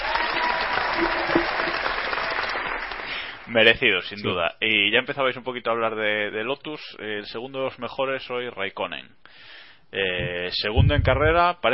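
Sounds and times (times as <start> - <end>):
audience applause: 0.0 - 3.4
speech: 3.5 - 11.7.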